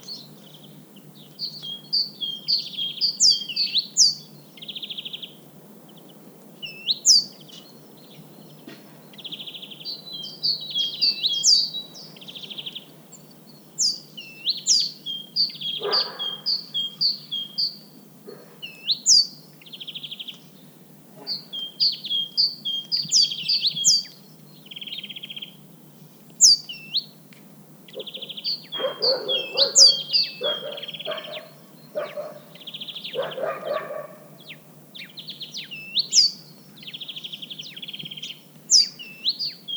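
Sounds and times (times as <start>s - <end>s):
great tit calls: 0.0s - 27.2s, 27.8s - 39.7s.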